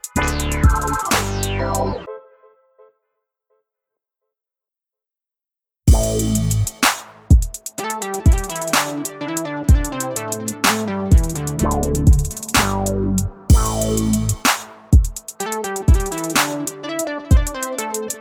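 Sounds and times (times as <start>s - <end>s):
carnival big beat music: 0.0s - 1.9s, 5.9s - 18.2s.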